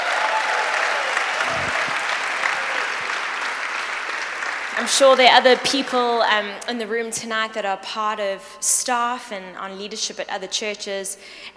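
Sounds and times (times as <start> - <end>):
applause: 0.0 - 6.1
speech: 4.8 - 11.5.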